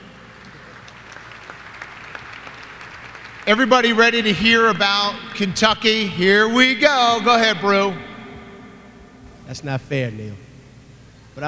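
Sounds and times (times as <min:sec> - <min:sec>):
crowd applauding: 0:00.0 - 0:05.9
speech: 0:03.5 - 0:08.1, 0:09.5 - 0:10.5.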